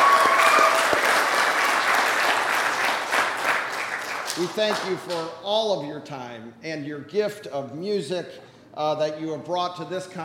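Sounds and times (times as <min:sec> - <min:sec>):
audience applauding: 0:00.0 - 0:05.1
speech: 0:04.4 - 0:10.2.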